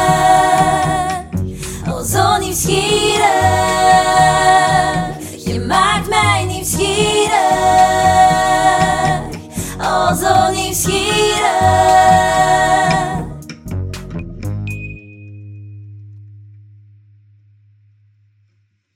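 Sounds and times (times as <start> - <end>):
blues music: 0.0 - 14.7.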